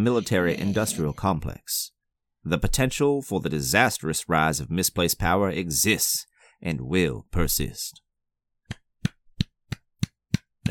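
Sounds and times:
speech: 0.0 - 8.0
slow sparse golf clap hand claps: 8.7 - 10.6.

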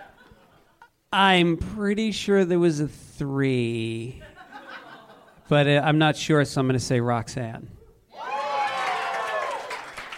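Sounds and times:
laughter: 0.0 - 0.9, 4.2 - 5.5
speech: 1.1 - 4.3, 5.5 - 7.8
audience cheering: 8.1 - 10.1.

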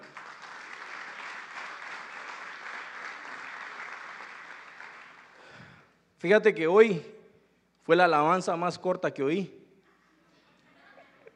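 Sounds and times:
audience applause: 0.0 - 5.8
speech: 6.2 - 7.1, 7.9 - 9.6.

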